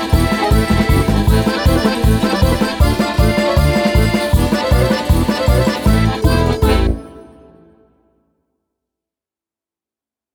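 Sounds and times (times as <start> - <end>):
Russian dance music: 0.0 - 7.8.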